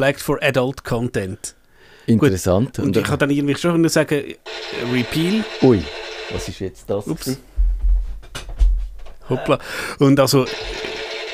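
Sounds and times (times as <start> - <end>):
speech: 0.0 - 7.5, 9.3 - 11.0
telephone ringing: 4.4 - 6.6, 10.4 - 11.3.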